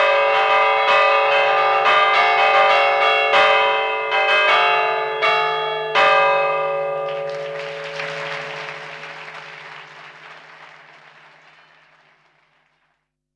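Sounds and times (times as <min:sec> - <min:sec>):
festive bell ringing: 0:00.0 - 0:10.3.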